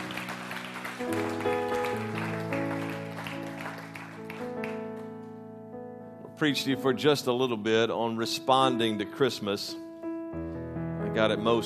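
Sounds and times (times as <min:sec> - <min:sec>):
audience clapping hands: 0:00.0 - 0:05.3
organ or keyboard chords: 0:00.0 - 0:11.6
speech: 0:06.4 - 0:09.8, 0:11.1 - 0:11.6.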